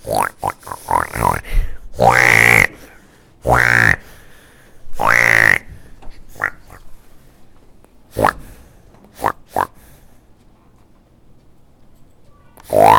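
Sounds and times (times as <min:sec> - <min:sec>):
pig grunting: 0:00.0 - 0:02.8, 0:03.4 - 0:04.1, 0:05.0 - 0:05.7, 0:06.3 - 0:06.9, 0:08.1 - 0:08.5, 0:09.1 - 0:09.8, 0:12.6 - 0:12.9.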